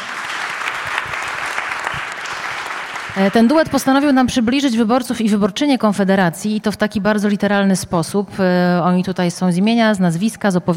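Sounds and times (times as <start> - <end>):
audience applause: 0.0 - 3.6
speech: 3.2 - 10.7.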